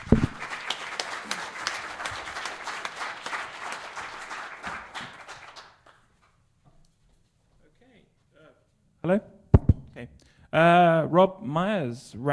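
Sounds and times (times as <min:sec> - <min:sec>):
audience applause: 0:00.0 - 0:06.1
speech: 0:10.5 - 0:12.3.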